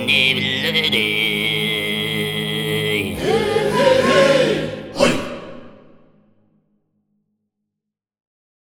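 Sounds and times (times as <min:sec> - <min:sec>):
Mongolian choir voices singing: 0:00.0 - 0:06.4.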